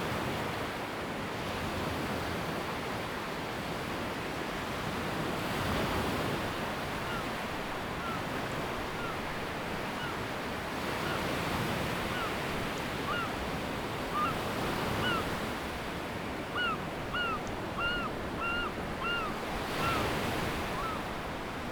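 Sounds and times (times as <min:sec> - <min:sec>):
ocean: 0:00.0 - 0:21.7.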